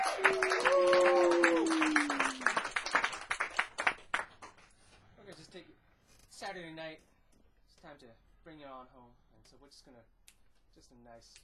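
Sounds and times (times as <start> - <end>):
audience applause: 0.0 - 4.6
speech: 8.0 - 10.2, 10.8 - 11.4.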